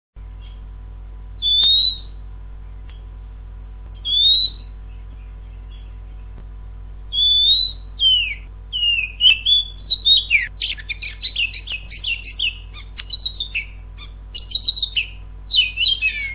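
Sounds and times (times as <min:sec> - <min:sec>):
Oriental magpie-robin whistled song: 0:01.4 - 0:02.2, 0:04.0 - 0:06.2, 0:07.1 - 0:16.3.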